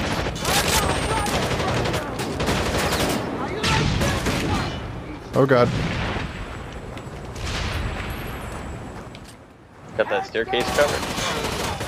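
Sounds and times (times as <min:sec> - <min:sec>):
frag grenade exploding in a multiplayer shooter video game: 0:00.0 - 0:09.0
speech: 0:05.4 - 0:06.0, 0:10.0 - 0:11.2.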